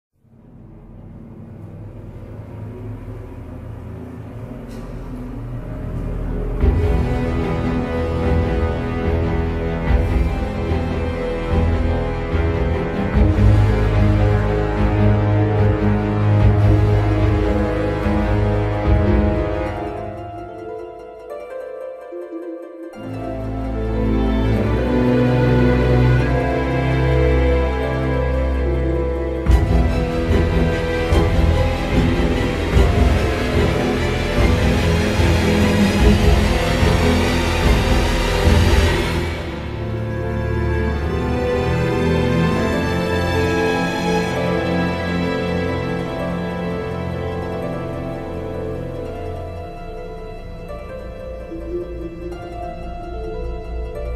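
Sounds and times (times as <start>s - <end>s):
suspense music: 0.1s - 54.1s.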